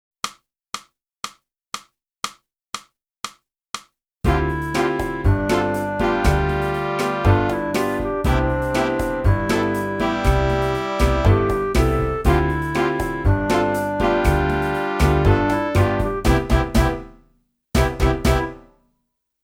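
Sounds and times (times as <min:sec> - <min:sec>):
flute: 0:04.3 - 0:17.0, 0:18.1 - 0:18.6.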